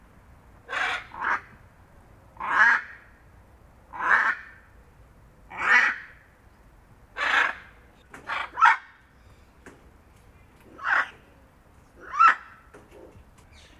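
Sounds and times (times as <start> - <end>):
hyacinth macaw giving grating honking squawks: 0.7 - 1.5, 2.4 - 3.0, 3.9 - 4.6, 5.5 - 6.2, 7.2 - 9.4, 10.7 - 11.2, 12.0 - 13.7.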